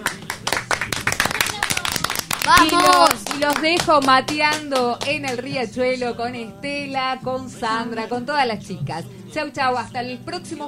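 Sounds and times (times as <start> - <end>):
sparse clapping from a few people on a radio show: 0.0 - 5.4
speech: 2.5 - 10.6.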